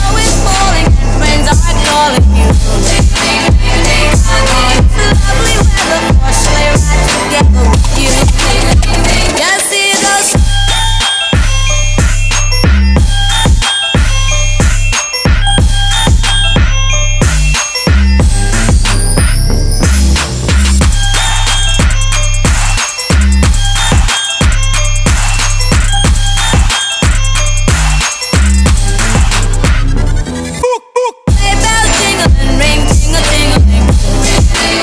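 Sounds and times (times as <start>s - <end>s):
trap remix: 0.0s - 34.8s
sleigh bells ringing: 10.4s - 29.6s.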